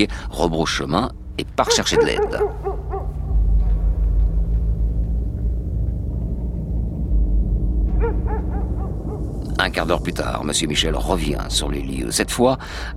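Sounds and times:
speech: 0.0 - 2.7, 9.7 - 12.9
steady loud low rumble: 0.0 - 12.9
dog barking: 1.6 - 3.2, 8.0 - 9.2.

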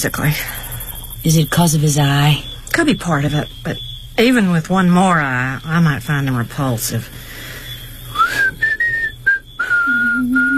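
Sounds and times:
speech: 0.0 - 0.6, 1.2 - 7.4
lower steady tone: 0.0 - 10.5
person whistling a tune: 8.1 - 10.5.

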